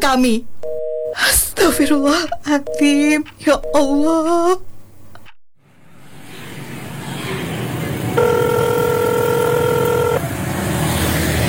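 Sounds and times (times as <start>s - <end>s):
speech: 0.0s - 0.5s, 1.2s - 4.7s
continuous road-traffic rumble: 0.0s - 11.4s
unanswered phone call ringback tone: 0.6s - 5.2s, 8.2s - 10.3s.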